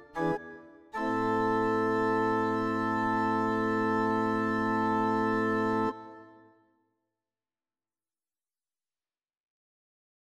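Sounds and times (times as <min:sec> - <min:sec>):
organ improvisation: 0:00.0 - 0:06.4.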